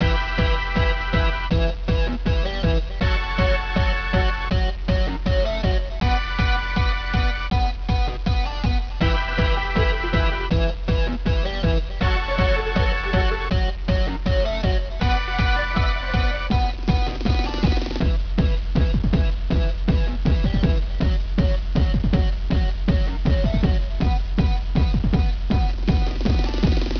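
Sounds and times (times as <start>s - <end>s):
music: 0.0s - 26.9s.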